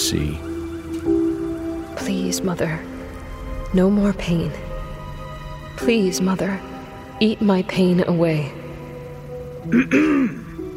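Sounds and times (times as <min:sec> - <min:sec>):
speech: 0:00.1 - 0:00.5, 0:02.1 - 0:03.0, 0:03.7 - 0:04.7, 0:05.8 - 0:08.6, 0:09.6 - 0:10.4
person clearing throat: 0:09.7 - 0:10.6.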